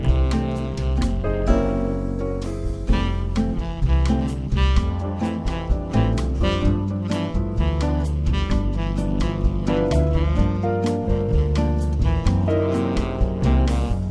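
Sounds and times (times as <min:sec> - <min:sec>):
jazz standards: 0:00.0 - 0:14.0.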